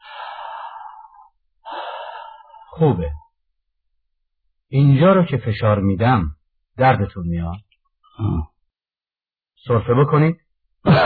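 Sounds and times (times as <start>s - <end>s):
deep breathing during a medical examination: 0.0s - 3.0s
speech: 2.8s - 3.2s, 4.7s - 7.6s, 8.2s - 8.5s, 9.6s - 11.0s.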